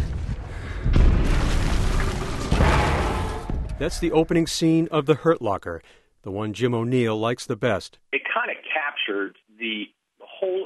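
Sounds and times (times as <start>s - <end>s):
bomb explosion set off by cell phone: 0.0s - 4.6s
speech: 3.8s - 10.6s.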